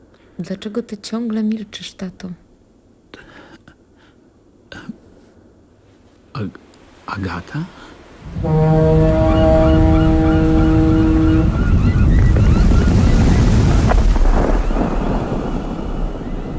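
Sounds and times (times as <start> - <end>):
speech: 0.4 - 2.4, 6.4 - 9.1
strong gusting wind: 8.0 - 16.5.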